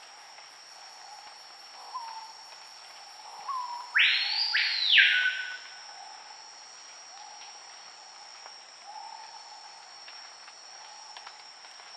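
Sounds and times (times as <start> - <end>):
Screaming piha Lipaugus vociferans whistled call: 3.5 - 5.7.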